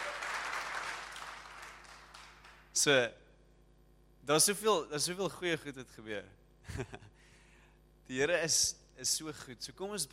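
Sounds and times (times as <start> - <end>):
church congregation applause: 0.0 - 2.7
speech: 2.8 - 3.2, 4.3 - 7.1, 8.1 - 10.1.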